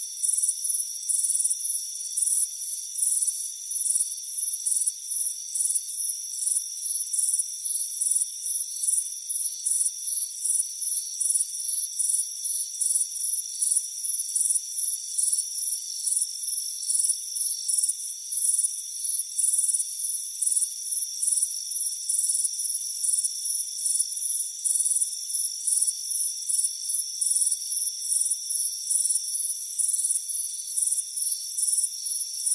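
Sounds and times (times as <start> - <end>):
crickets chirping: 0.0 - 32.5.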